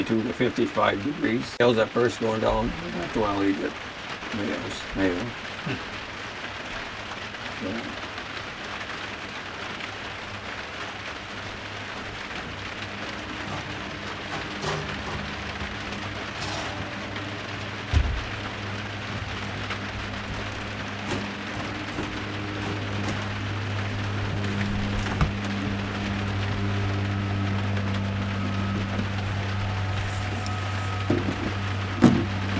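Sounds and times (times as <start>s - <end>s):
speech: 0.0s - 6.0s, 7.6s - 8.0s
heavy rain pouring down: 0.0s - 32.5s
low droning hum: 2.4s - 32.5s
sharp knocks: 12.4s - 23.6s.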